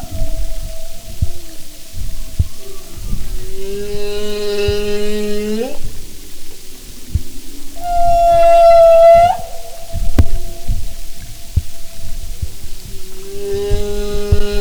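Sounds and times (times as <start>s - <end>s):
humpback whale tonal moan: 0.0s - 6.4s, 7.1s - 14.5s
low thumps: 0.0s - 14.5s.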